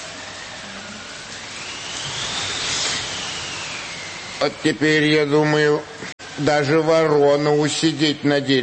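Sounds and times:
howling wind: 0.0s - 6.4s
speech: 4.4s - 8.6s.

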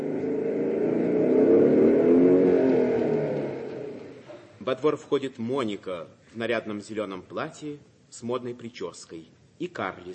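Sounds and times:
motorcycle engine pulling up to a gate: 0.0s - 4.5s
speech: 4.7s - 10.1s.

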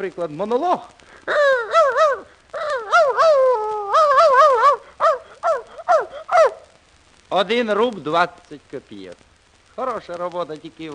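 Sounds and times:
speech: 0.0s - 1.6s, 7.3s - 10.9s
person imitating dog barking: 1.3s - 6.7s.

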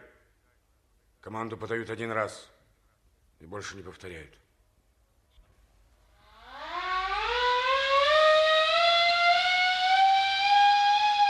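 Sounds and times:
speech: 1.2s - 2.6s, 3.4s - 4.4s
loud mechanical siren calling crew to a meeting: 6.2s - 11.2s.

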